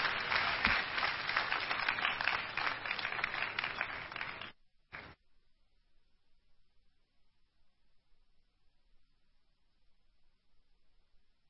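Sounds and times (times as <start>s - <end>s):
church congregation applauding during a Christmas Day service: 0.0s - 5.2s.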